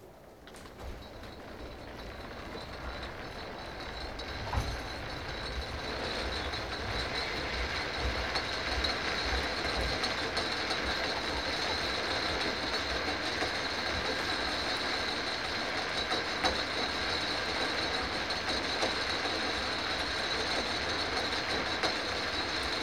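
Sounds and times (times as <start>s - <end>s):
funicular railway in Prague recorded outside: 0.0s - 22.8s.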